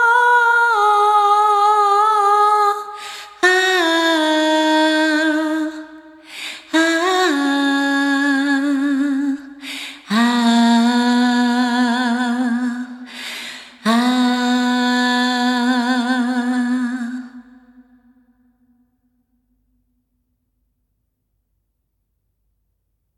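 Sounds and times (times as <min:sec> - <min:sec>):
person singing a song a cappella: 0:00.0 - 0:18.4.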